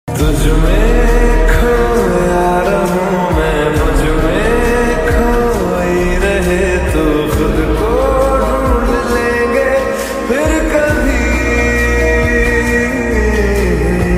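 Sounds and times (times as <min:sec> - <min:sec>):
slowed lofi music with reverb: 0:00.1 - 0:14.1.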